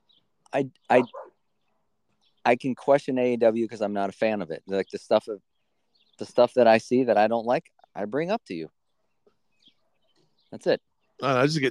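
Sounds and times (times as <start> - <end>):
speech: 0.5 - 1.3, 2.4 - 5.5, 6.2 - 8.8, 10.5 - 11.6
dogs barking: 0.9 - 1.4.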